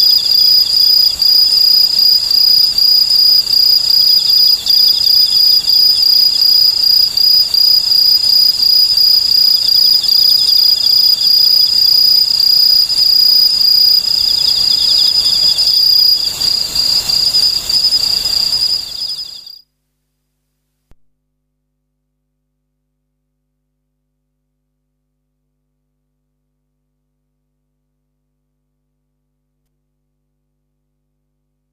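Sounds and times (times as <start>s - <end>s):
Okame cricket chirping: 0.0s - 19.6s.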